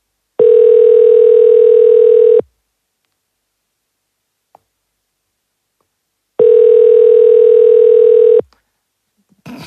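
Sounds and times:
telephone ringback tone on a call: 0.4s - 2.4s, 6.4s - 8.4s.

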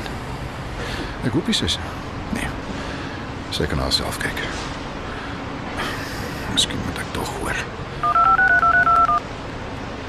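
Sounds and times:
speech: 1.2s - 2.4s, 3.5s - 4.7s, 6.6s - 8.2s
touch-tone beeps of a telephone number being dialed: 8.0s - 9.2s.

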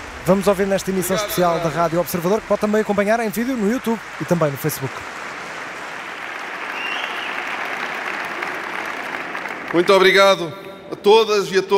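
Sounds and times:
standing ovation applause: 0.0s - 11.1s
speech: 0.2s - 5.2s, 9.7s - 11.7s.

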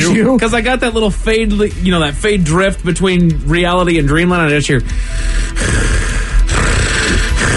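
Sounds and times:
speech: 0.1s - 5.9s
voice imitating loud heavy sleep breathing: 4.9s - 7.5s.

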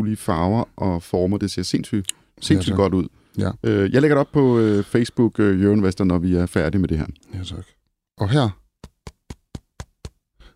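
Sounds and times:
speech: 0.0s - 8.6s
left hand tapping on a porcini mushroom: 8.8s - 10.3s.

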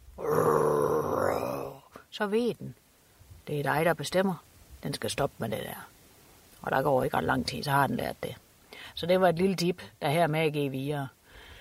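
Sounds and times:
person imitating a dog's growl: 0.2s - 1.9s
speech: 2.1s - 2.8s, 3.5s - 5.9s, 6.6s - 11.2s.

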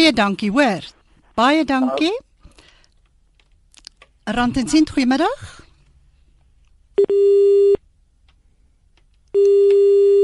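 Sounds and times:
speech: 0.0s - 2.3s, 4.3s - 5.6s, 7.0s - 7.8s, 9.4s - 10.2s
telephone line tone after a dropped call: 7.0s - 7.8s, 9.4s - 10.2s.

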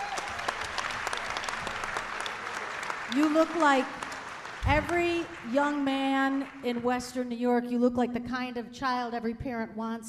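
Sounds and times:
audience applause: 0.0s - 6.8s
speech: 3.1s - 4.0s, 4.6s - 10.0s.

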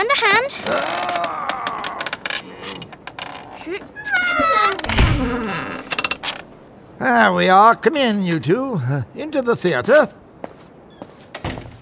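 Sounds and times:
speech: 0.0s - 1.4s, 7.0s - 10.2s
side door being pried open: 4.1s - 6.4s.

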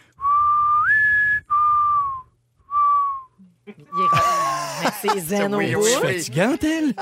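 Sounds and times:
person whistling a mourning dove's call: 0.2s - 3.4s
laughter: 3.8s - 6.9s
speech: 5.0s - 6.9s.

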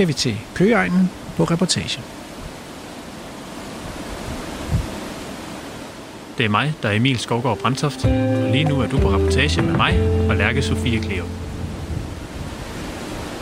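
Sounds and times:
speech: 0.0s - 2.2s, 6.4s - 11.5s
inside car on ferry car deck: 8.1s - 12.8s.

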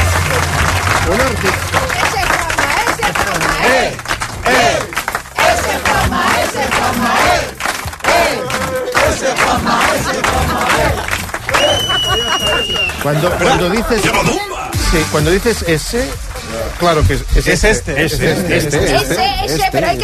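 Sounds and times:
audience applause: 0.0s - 14.2s, 15.7s - 17.7s
crowd cheering and shouting: 0.0s - 14.8s
laughter: 8.2s - 14.6s, 17.2s - 19.4s
high whistle: 11.5s - 13.0s
speech: 13.1s - 20.0s.

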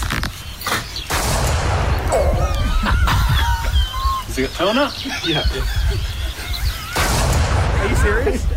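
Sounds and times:
gunshot cracks from a slug gun: 1.1s - 2.2s, 7.0s - 8.0s
laughter: 2.1s - 7.3s
speech: 4.4s - 6.1s, 8.0s - 8.5s.

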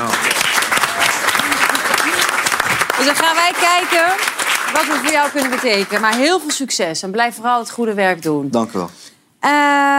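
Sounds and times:
studio applause from a group of people: 0.0s - 6.7s
speech: 3.0s - 9.9s.

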